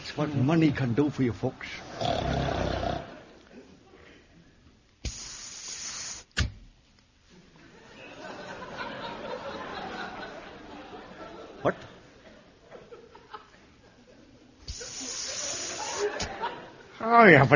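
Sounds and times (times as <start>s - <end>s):
speech: 0.2s - 2.7s, 17.3s - 17.5s
record of snoring: 2.0s - 3.1s
laughter: 7.4s - 17.0s.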